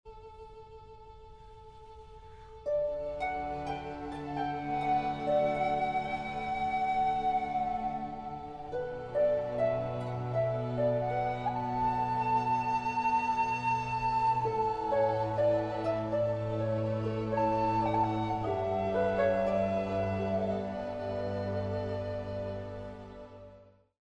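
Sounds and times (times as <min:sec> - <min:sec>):
flute and orchestra: 0:00.1 - 0:24.0.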